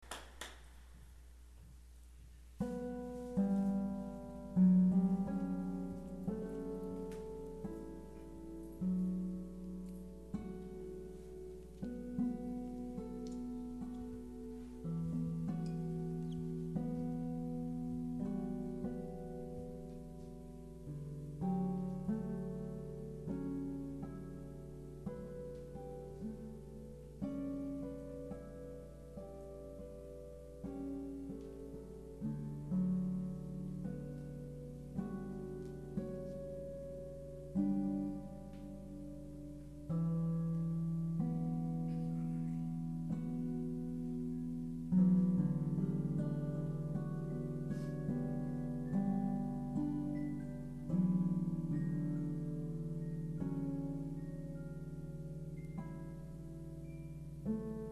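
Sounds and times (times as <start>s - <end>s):
harp music: 2.6s - 57.9s.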